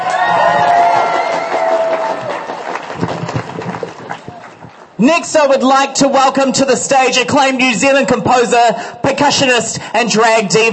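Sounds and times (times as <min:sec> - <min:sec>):
audience applause and cheering at a live stage show: 0:00.0 - 0:05.0
speech: 0:05.0 - 0:10.7.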